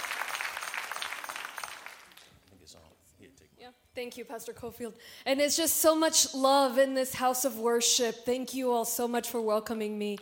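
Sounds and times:
audience applauding: 0:00.0 - 0:02.4
speech: 0:03.7 - 0:10.2.

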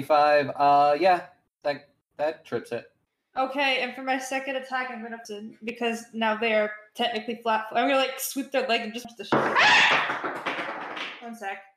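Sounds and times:
speech: 0:00.0 - 0:10.5, 0:11.3 - 0:11.7
metal dice falling off a table: 0:09.4 - 0:11.3.

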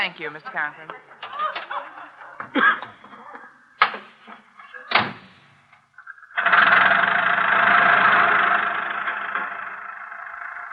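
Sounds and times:
speech: 0:00.0 - 0:01.2, 0:02.4 - 0:03.0
laughter: 0:00.8 - 0:03.7
car engine running during a drive: 0:06.4 - 0:10.7.

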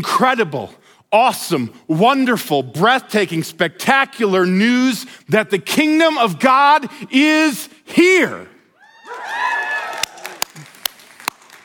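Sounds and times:
speech: 0:00.0 - 0:08.5
audience cheering and whooping: 0:08.8 - 0:11.1
scattered claps in a large room: 0:10.0 - 0:11.6.

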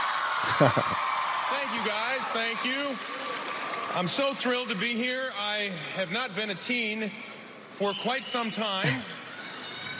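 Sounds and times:
crowd cheering: 0:00.0 - 0:04.4
speech: 0:00.5 - 0:03.3, 0:03.9 - 0:09.3.

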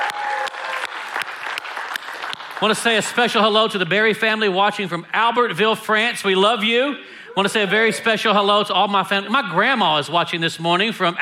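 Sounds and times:
church audience applause at High Ridge: 0:00.0 - 0:03.2
speech: 0:02.6 - 0:11.1.

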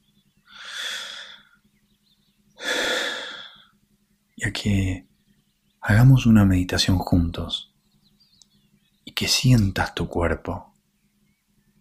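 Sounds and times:
deep breaths during a guided meditation: 0:00.5 - 0:01.6, 0:02.6 - 0:03.8
speech: 0:04.4 - 0:05.1, 0:05.9 - 0:07.7, 0:09.2 - 0:10.7.

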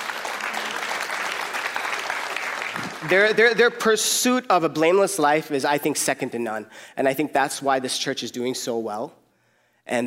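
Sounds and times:
audience clapping: 0:00.0 - 0:03.8
speech: 0:02.8 - 0:09.2, 0:09.9 - 0:10.0.

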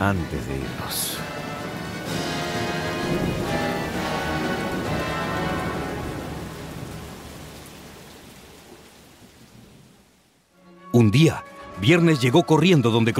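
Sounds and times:
speech: 0:00.0 - 0:01.4, 0:11.0 - 0:13.1
heavy rain: 0:00.0 - 0:10.6
thunder: 0:02.0 - 0:08.1.

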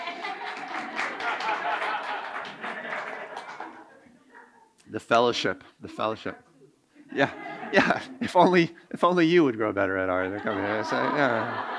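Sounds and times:
audience applause for girls: 0:00.0 - 0:03.9
laughter: 0:00.0 - 0:04.0, 0:07.1 - 0:08.7, 0:10.2 - 0:11.7
speech: 0:04.9 - 0:06.5, 0:07.1 - 0:11.7.

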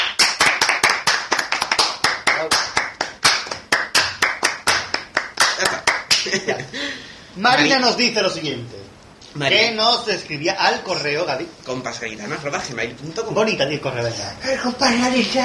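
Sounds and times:
hand clapping applause: 0:00.0 - 0:06.4
speech: 0:07.4 - 0:15.4.

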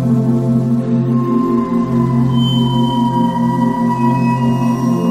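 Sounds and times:
binaural beats drone of layered low tones: 0:00.2 - 0:05.0
bright ringing tones gliding downward: 0:01.2 - 0:05.0.

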